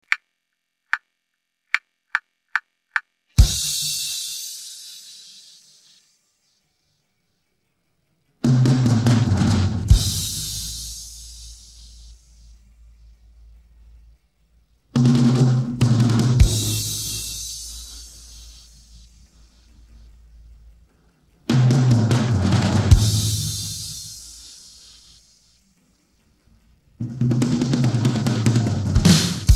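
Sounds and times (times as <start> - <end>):
drum intro: 3.4 - 6.0, 8.4 - 14.2, 14.9 - 29.5.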